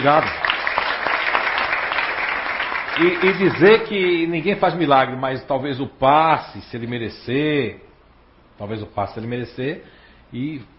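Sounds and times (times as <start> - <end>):
speech: 0.0 - 0.5, 3.0 - 7.9, 8.6 - 10.7
audience applause: 0.0 - 4.2.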